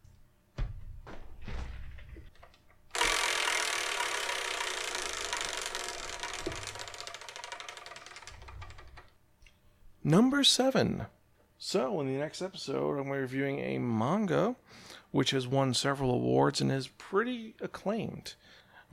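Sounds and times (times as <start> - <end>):
prize wheel spun for a game clicking: 2.9 - 9.2
speech: 10.1 - 18.9.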